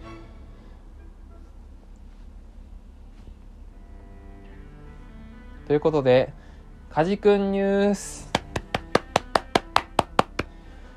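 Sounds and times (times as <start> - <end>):
speech: 5.7 - 8.3
one person clapping hands: 8.3 - 10.5.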